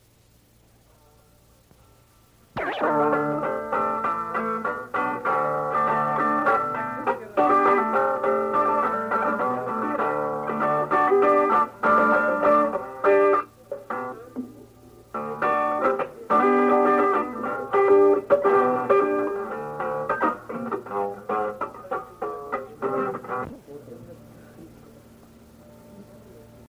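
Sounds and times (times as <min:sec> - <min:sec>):
instrumental music: 0:02.6 - 0:23.6.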